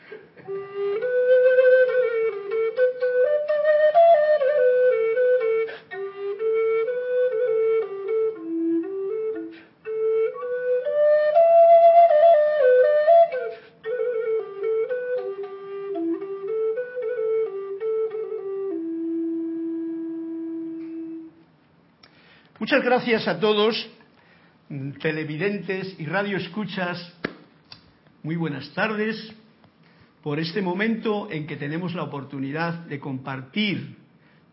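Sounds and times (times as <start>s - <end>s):
eagle flute being played: 0.4s - 21.5s
speech: 22.7s - 24.0s, 25.0s - 27.2s, 28.2s - 29.4s, 30.2s - 34.0s.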